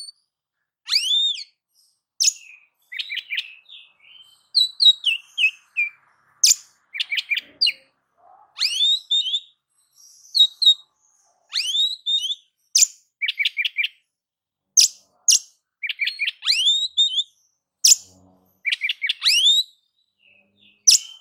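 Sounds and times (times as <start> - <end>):
oriental magpie-robin singing: 0.9 - 14.0, 14.8 - 21.2.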